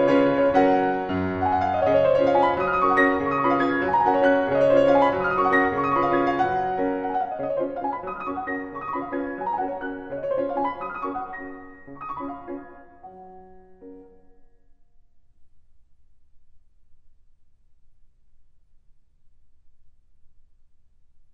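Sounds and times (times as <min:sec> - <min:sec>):
waltz in G flat major: 0:00.0 - 0:14.6.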